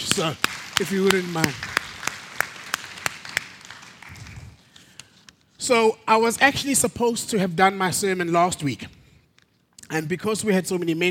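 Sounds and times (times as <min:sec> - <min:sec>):
church audience applauding: 0:00.0 - 0:04.6
speech: 0:00.2 - 0:01.7, 0:05.6 - 0:09.0, 0:09.9 - 0:11.0.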